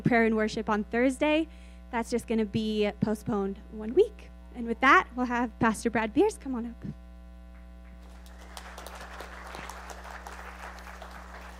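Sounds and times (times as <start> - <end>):
speech: 0.0 - 7.0
low electrical hum: 0.0 - 11.5
crowd applauding: 8.0 - 11.5.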